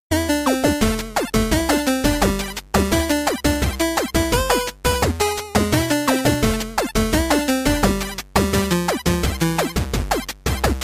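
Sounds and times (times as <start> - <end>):
8-bit music: 0.1 - 10.8.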